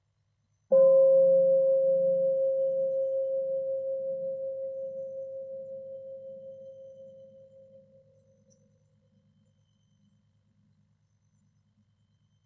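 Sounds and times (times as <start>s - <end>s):
meditation bell being struck: 0.7s - 8.0s.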